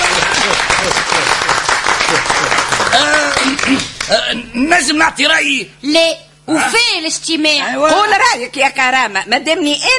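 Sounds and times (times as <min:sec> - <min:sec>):
applause from a group of people: 0:00.0 - 0:04.2
speech: 0:03.7 - 0:09.9.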